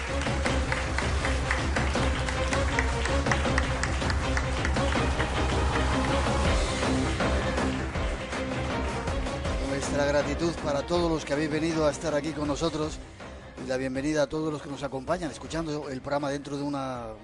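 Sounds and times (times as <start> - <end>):
audience applause: 0.0 - 9.3
speech: 10.4 - 17.2.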